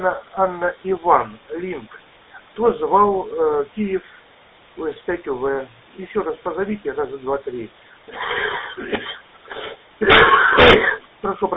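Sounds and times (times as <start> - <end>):
speech: 0.0 - 2.0, 2.6 - 4.2, 4.8 - 11.5
man coughing over a narrow-band radio link: 8.1 - 11.1.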